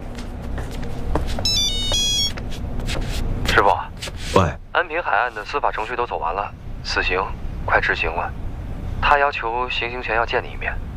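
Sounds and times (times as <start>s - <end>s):
steady low rumble of noise: 0.0s - 10.9s
phone electronic ringtone chirping: 1.4s - 2.4s
speech: 3.6s - 8.4s, 9.0s - 10.9s.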